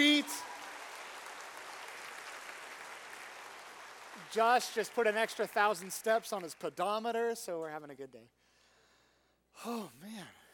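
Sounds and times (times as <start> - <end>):
audience applause: 0.0 - 6.8
speech: 4.3 - 8.4, 9.6 - 10.4.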